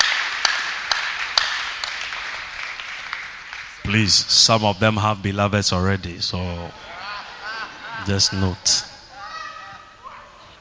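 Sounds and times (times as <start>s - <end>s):
audience clapping: 0.0s - 4.3s
speech: 3.9s - 6.9s, 8.0s - 8.9s
laughter: 3.9s - 10.5s.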